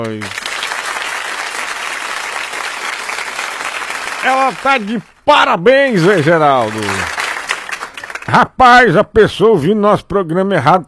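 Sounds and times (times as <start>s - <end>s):
speech: 0.0s - 0.4s, 4.2s - 7.2s, 8.3s - 10.8s
applause for a woman: 0.0s - 8.5s.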